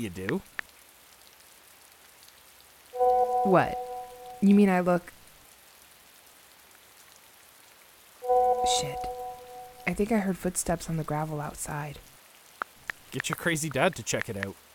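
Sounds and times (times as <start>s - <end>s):
speech: 0.0s - 0.6s, 3.4s - 3.8s, 4.4s - 5.2s, 8.7s - 9.1s, 9.9s - 12.1s, 13.1s - 14.6s
rain falling: 0.0s - 14.7s.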